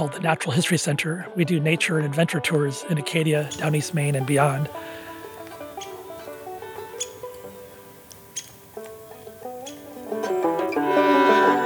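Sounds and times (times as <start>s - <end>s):
speech: 0.0s - 5.0s
downy woodpecker high-pitched squeak: 3.4s - 11.6s.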